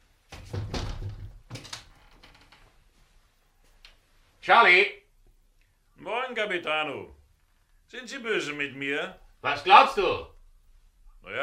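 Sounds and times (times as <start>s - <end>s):
window being opened with thuds and rattling knocks: 0.3s - 1.8s
speech: 4.5s - 5.0s, 6.3s - 7.2s, 7.9s - 10.3s, 11.2s - 11.4s.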